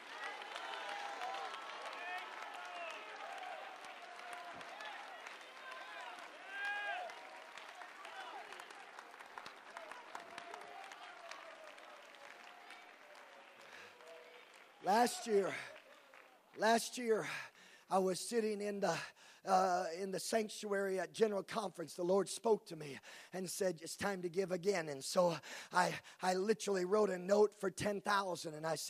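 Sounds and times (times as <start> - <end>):
audience shouting: 0.0 - 13.5
audience clapping: 0.0 - 17.5
speech: 14.9 - 15.7, 16.6 - 28.8.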